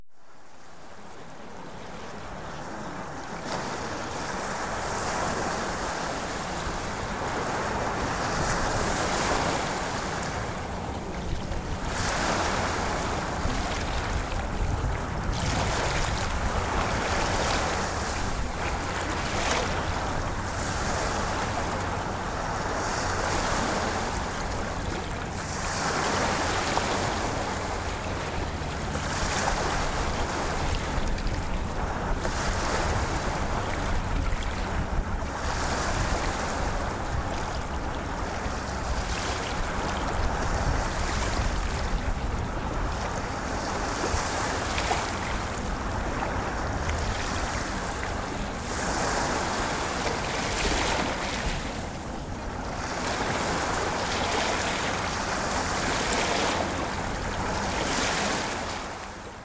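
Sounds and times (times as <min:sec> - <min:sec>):
ocean waves: 0:00.1 - 0:59.4.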